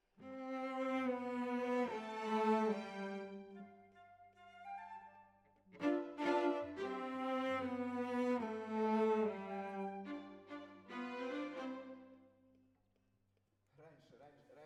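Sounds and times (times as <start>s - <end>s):
cellos playing: 0.2s - 3.7s, 5.7s - 12.2s.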